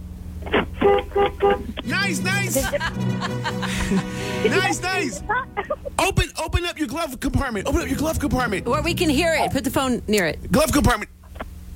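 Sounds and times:
car horn honking heard over a phone line: 0:00.8 - 0:02.4
speech: 0:01.4 - 0:11.2
laughter: 0:01.8 - 0:06.2.

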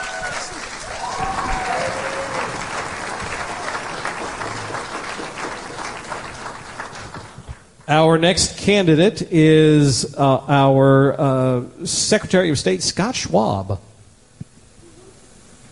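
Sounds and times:
faint cheers and whistles: 0:00.0 - 0:04.9
audience applause: 0:00.0 - 0:07.8
speech: 0:07.9 - 0:13.8.

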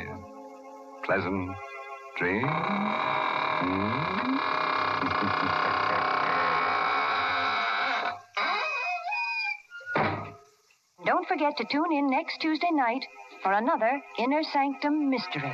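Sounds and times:
speech: 0:01.1 - 0:05.8, 0:11.3 - 0:15.5
squeaking door closing: 0:02.4 - 0:10.4.

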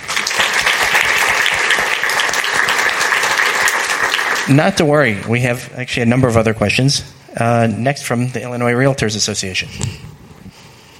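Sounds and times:
audience applause: 0:00.0 - 0:04.8
speech: 0:04.5 - 0:10.2.

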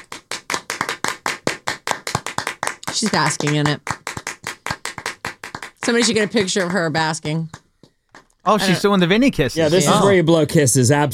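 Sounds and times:
show audience clapping slowly: 0:00.0 - 0:08.4
speech: 0:03.0 - 0:03.9, 0:05.8 - 0:07.6, 0:08.4 - 0:11.1.

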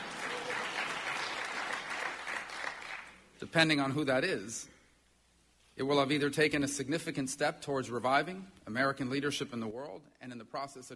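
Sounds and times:
audience applause at a political gathering: 0:00.0 - 0:03.2
speech: 0:03.4 - 0:04.8, 0:05.8 - 0:10.9.

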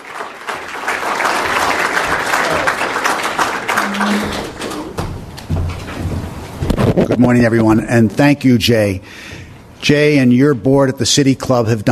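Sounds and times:
audience applause: 0:00.0 - 0:05.1
speech: 0:07.0 - 0:09.2, 0:09.8 - 0:11.8.

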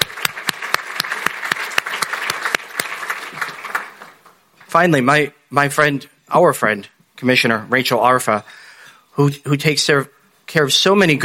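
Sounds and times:
crowd applauding: 0:00.0 - 0:04.4
speech: 0:04.7 - 0:08.6, 0:09.2 - 0:11.2.

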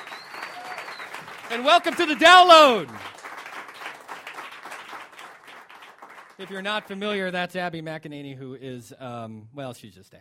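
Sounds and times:
audience applause for a guest being introduced: 0:00.0 - 0:07.0
speech: 0:01.5 - 0:03.1, 0:06.4 - 0:10.2.

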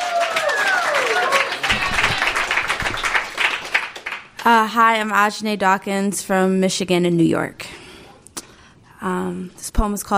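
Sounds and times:
scattered cheers: 0:00.0 - 0:03.8
audience applause: 0:00.0 - 0:04.4
speech: 0:04.4 - 0:07.7, 0:09.0 - 0:10.1.

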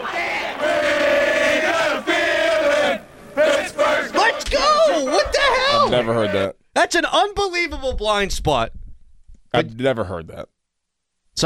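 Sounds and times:
stadium crowd of football fans chanting: 0:00.0 - 0:06.2
speech: 0:05.9 - 0:08.8, 0:09.5 - 0:10.5.

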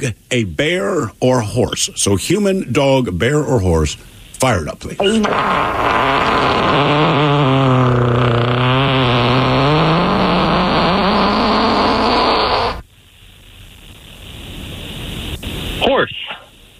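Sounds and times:
speech: 0:00.0 - 0:08.0
human fart: 0:05.0 - 0:12.8.

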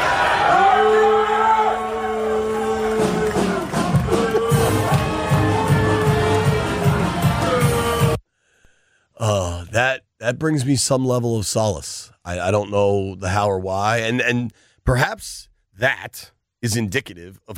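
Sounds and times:
crowd booing: 0:00.0 - 0:08.2
speech: 0:10.3 - 0:17.5.

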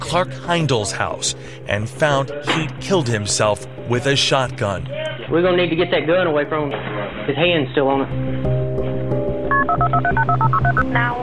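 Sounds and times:
speech: 0:00.1 - 0:08.6, 0:10.0 - 0:11.2
touch-tone beeps of a phone number being keyed in: 0:09.5 - 0:11.2.

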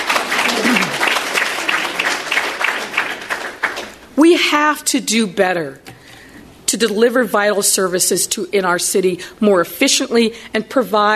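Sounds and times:
audience clapping: 0:00.0 - 0:04.1
speech: 0:04.3 - 0:05.9, 0:06.8 - 0:11.1.

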